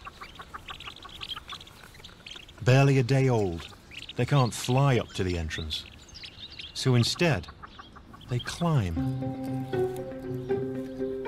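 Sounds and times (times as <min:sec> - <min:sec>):
mother bird chirping to day-old chicks: 0:00.0 - 0:11.2
speech: 0:02.6 - 0:05.9, 0:06.8 - 0:07.6, 0:08.3 - 0:11.0.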